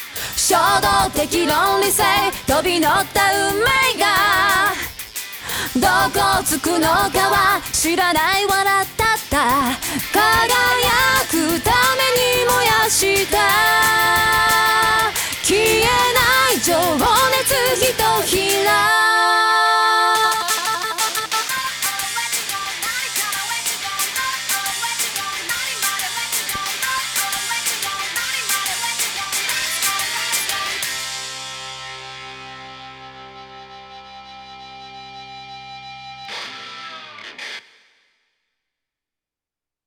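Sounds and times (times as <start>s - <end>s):
a cappella singing: 0.1s - 31.1s.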